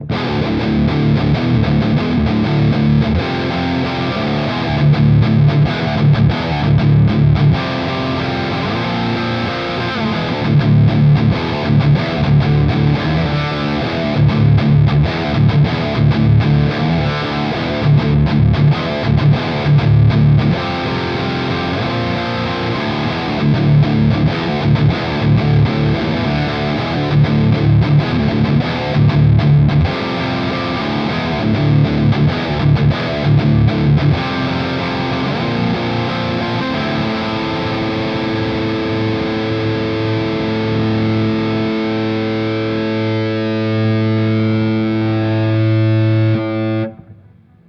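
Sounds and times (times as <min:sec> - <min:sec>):
REVV G20 high gain guitar amp: 0:00.0 - 0:47.6.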